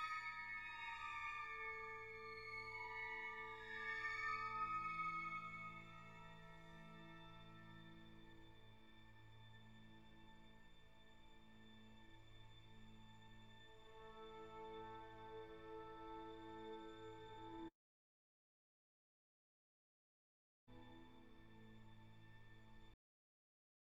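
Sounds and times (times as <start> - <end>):
classical music: 0.2 - 8.4, 13.9 - 17.7.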